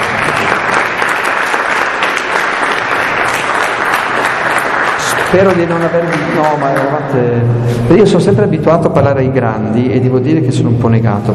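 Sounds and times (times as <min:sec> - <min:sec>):
young audience applauding: 0:00.0 - 0:07.2
speech: 0:05.3 - 0:11.3.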